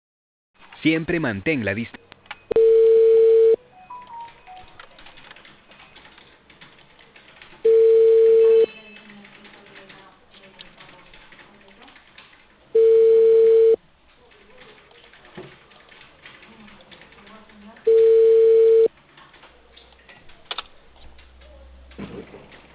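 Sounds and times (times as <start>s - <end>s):
speech: 0.8s - 2.0s
ringback tone of an outgoing call from a cable company in Peru: 2.5s - 4.8s, 7.6s - 8.7s, 12.8s - 13.8s, 17.9s - 18.9s.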